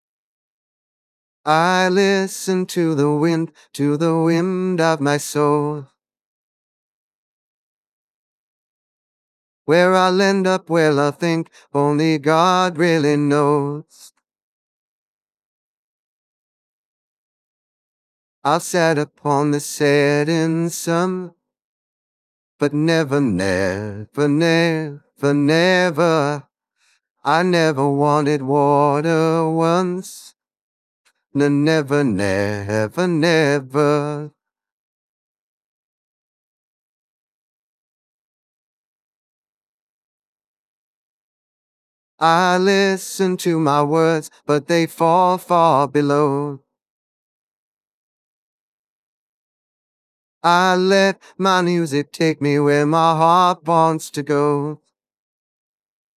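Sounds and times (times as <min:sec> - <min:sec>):
voice: 0:01.5 - 0:05.8, 0:09.7 - 0:14.1, 0:18.5 - 0:21.3, 0:22.6 - 0:26.4, 0:27.3 - 0:30.3, 0:31.4 - 0:34.3, 0:42.2 - 0:46.5, 0:50.5 - 0:54.8.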